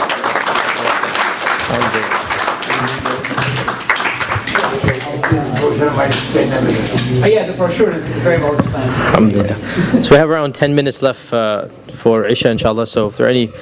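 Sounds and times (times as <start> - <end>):
room full of people applauding: 0.0 - 5.9
speech: 1.7 - 3.9, 4.5 - 13.6.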